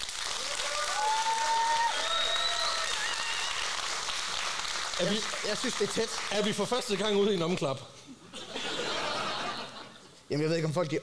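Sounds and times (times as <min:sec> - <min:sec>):
audience applause: 0:00.0 - 0:07.5
faint whistles or cheers: 0:00.4 - 0:03.7
speech: 0:05.0 - 0:08.2, 0:10.3 - 0:11.0
laughter: 0:08.2 - 0:10.2.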